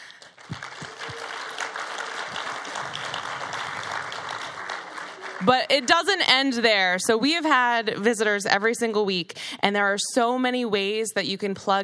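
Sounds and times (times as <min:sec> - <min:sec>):
audience applause welcoming visitors: 0:00.0 - 0:06.6
speech: 0:05.4 - 0:11.8.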